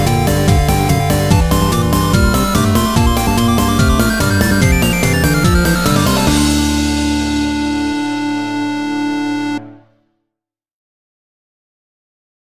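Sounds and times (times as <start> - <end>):
square wave rave music: 0.0 - 9.8.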